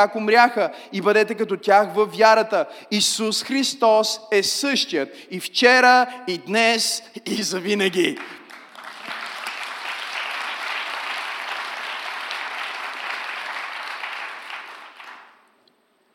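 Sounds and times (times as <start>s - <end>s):
speech: 0.0s - 8.4s
audience applause: 8.2s - 15.5s.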